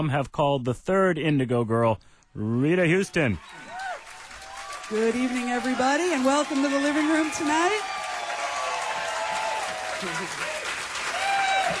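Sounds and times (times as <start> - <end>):
speech: 0.0 - 3.8, 4.9 - 7.9, 10.0 - 10.6
large audience applauding a live concert performance: 2.9 - 11.7.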